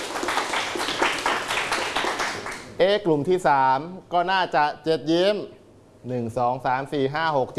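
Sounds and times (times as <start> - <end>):
group clapping in unison in a counted team game: 0.0 - 2.7
speech: 2.8 - 7.5.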